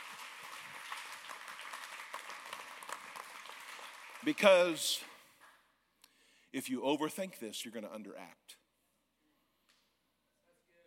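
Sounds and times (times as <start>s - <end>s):
audience clapping hands: 0.0s - 5.6s
speech: 4.2s - 5.1s, 6.5s - 8.5s.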